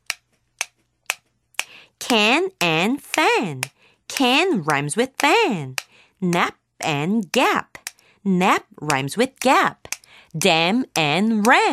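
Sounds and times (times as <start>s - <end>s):
ballpoint pen tapping a beat: 0.0s - 8.1s, 8.7s - 11.7s
speech: 2.1s - 7.6s, 8.2s - 11.7s.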